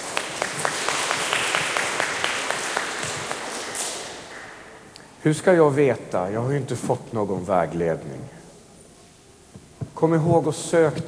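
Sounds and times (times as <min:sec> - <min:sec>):
audience applause: 0:00.0 - 0:04.8
speech: 0:05.2 - 0:08.4, 0:10.0 - 0:11.0.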